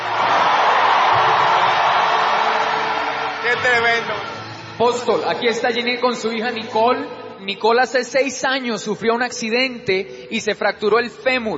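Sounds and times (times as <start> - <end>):
audience shouting: 0.0 - 4.4
audience applauding: 0.0 - 5.8
speech: 3.6 - 11.5.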